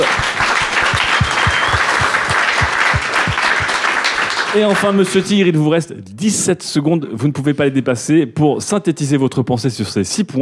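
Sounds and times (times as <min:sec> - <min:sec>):
audience applause: 0:00.0 - 0:05.1
speech: 0:04.6 - 0:10.4.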